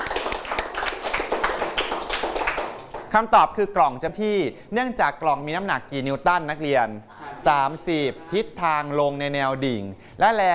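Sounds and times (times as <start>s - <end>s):
students clapping hands: 0.0s - 3.2s
speech: 3.1s - 10.5s.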